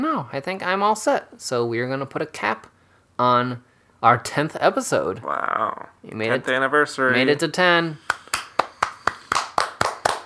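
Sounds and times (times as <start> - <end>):
speech: 0.2 - 8.2
hands clapping: 8.0 - 10.2.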